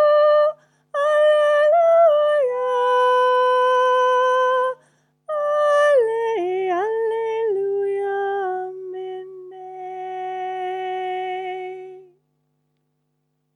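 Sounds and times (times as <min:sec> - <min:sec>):
soprano singing: 0:00.0 - 0:12.1.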